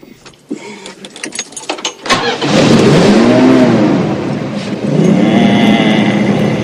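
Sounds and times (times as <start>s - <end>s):
car engine starting and revving: 2.0s - 6.6s.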